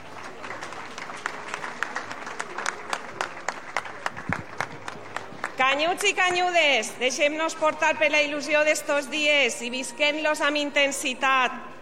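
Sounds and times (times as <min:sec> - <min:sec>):
audience applause: 0:00.0 - 0:05.6
speech: 0:05.7 - 0:11.7.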